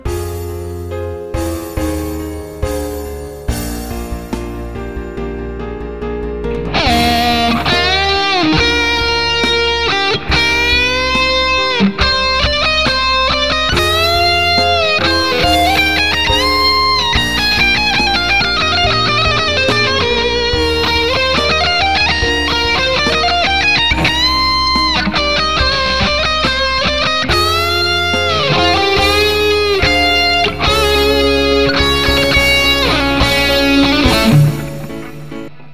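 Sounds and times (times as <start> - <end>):
metal music: 0.0 - 35.7.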